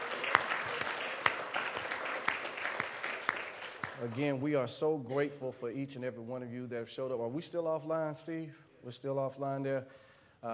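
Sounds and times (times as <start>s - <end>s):
audience applause hand clapping: 0.0s - 4.5s
speech: 4.0s - 10.5s.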